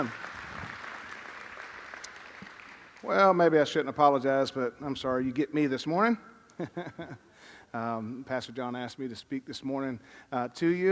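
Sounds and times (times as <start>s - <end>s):
speech: 0.0s - 0.2s, 3.0s - 10.8s
audience clapping in praise: 0.0s - 3.4s.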